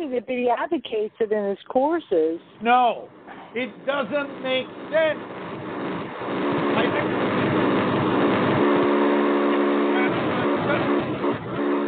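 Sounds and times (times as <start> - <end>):
speech: 0.1 - 5.4
buzzing: 2.5 - 11.8.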